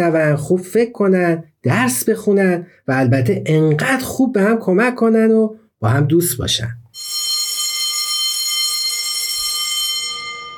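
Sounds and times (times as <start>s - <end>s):
speech: 0.0s - 6.8s
school bell ringing: 7.0s - 10.5s.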